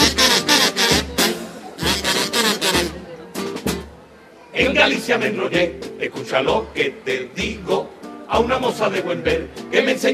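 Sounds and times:
polka song by a carnival street group: 0:00.0 - 0:10.1
speech: 0:04.7 - 0:10.1.

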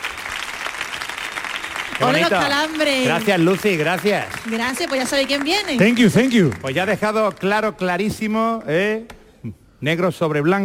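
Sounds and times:
loud audience applause: 0:00.0 - 0:07.7
speech: 0:02.0 - 0:10.6.

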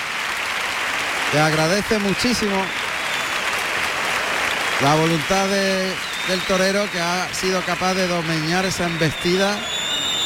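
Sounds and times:
bullring crowd ovation clapping: 0:00.0 - 0:10.2
speech: 0:01.3 - 0:02.8, 0:04.8 - 0:09.8.

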